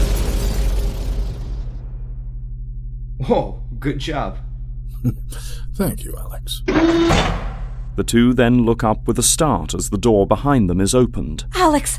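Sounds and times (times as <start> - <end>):
energy blast destroying a target: 0.0 - 2.5
speech: 3.2 - 11.9.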